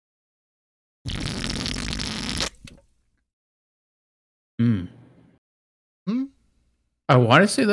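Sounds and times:
slurping a carbonated drink: 0:01.1 - 0:02.9
speech: 0:07.1 - 0:07.7.

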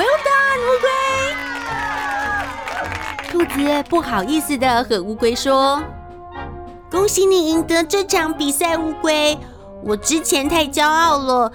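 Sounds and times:
crowd cheering: 0:00.0 - 0:04.2
speech: 0:03.5 - 0:06.0, 0:06.9 - 0:11.5.

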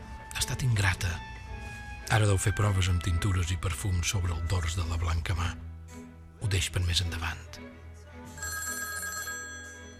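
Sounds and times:
speech: 0:00.4 - 0:01.3, 0:02.1 - 0:05.7, 0:06.4 - 0:07.7
telephone ringing: 0:08.3 - 0:09.9.

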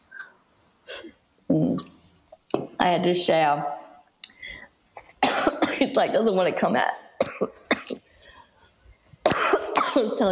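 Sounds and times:
speech: 0:01.5 - 0:02.0, 0:02.8 - 0:03.8, 0:05.8 - 0:07.7, 0:10.0 - 0:10.3
harsh breathy coughing: 0:05.0 - 0:05.8, 0:07.2 - 0:08.1, 0:09.2 - 0:10.1.

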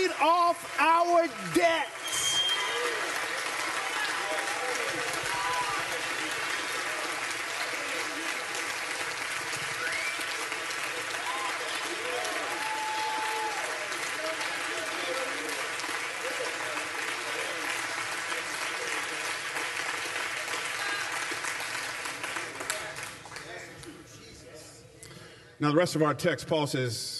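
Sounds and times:
audience cheers and praise shouts: 0:00.0 - 0:08.1, 0:09.5 - 0:15.5
audience applause: 0:00.0 - 0:23.6
speech: 0:00.2 - 0:02.2, 0:25.6 - 0:27.1.

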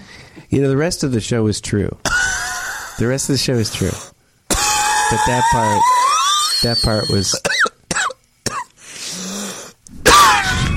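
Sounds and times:
speech: 0:00.5 - 0:02.2, 0:03.0 - 0:04.2, 0:05.1 - 0:06.0, 0:06.6 - 0:07.5
phlegmy cough: 0:02.0 - 0:02.5, 0:04.5 - 0:05.9, 0:07.3 - 0:08.7.

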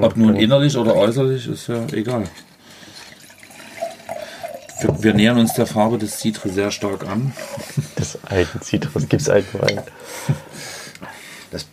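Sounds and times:
speech: 0:00.0 - 0:02.5, 0:04.8 - 0:10.7, 0:11.5 - 0:11.7
water poured for rinsing at a wine tasting: 0:02.9 - 0:07.2.

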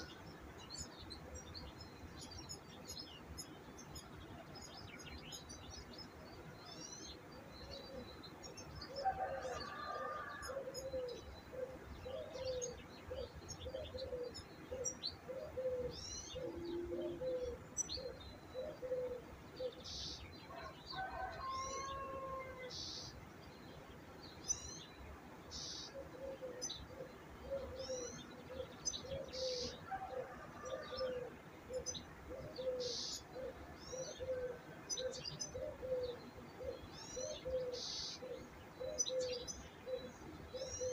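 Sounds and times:
birdsong chirps and trills: 0:00.0 - 0:40.9
low cooing: 0:09.0 - 0:17.6, 0:18.6 - 0:19.2, 0:26.1 - 0:40.9.

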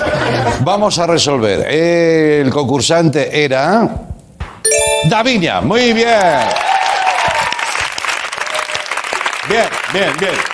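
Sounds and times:
speech: 0:00.5 - 0:06.7, 0:09.5 - 0:10.5
audience applause for contestant: 0:06.1 - 0:10.5.

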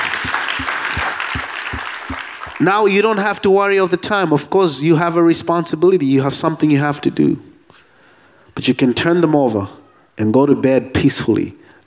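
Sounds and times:
congregation clapping in praise during a church worship service: 0:00.0 - 0:02.7
speech: 0:02.6 - 0:07.5, 0:08.6 - 0:11.8.

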